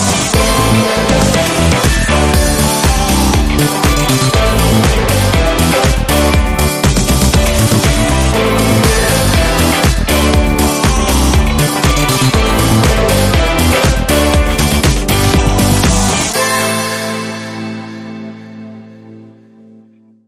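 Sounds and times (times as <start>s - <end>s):
funky background music: 0.0s - 20.2s.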